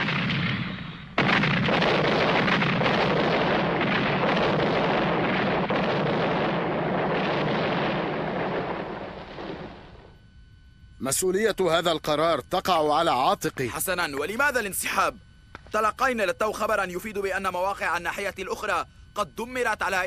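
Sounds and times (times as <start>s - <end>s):
heavy booming artillery fire: 0.0s - 10.2s
battlefield crackling and thudding: 0.0s - 10.3s
speech: 11.1s - 20.0s.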